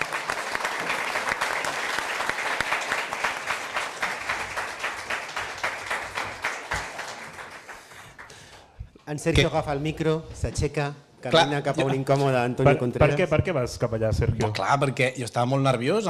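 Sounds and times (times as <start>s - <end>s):
audience applause: 0.0s - 8.7s
speech: 9.1s - 16.0s.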